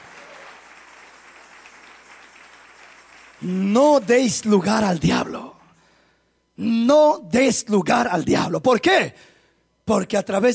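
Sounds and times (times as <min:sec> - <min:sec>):
audience applause: 0:00.0 - 0:03.4
speech: 0:03.4 - 0:05.6, 0:06.6 - 0:09.3, 0:09.9 - 0:10.5.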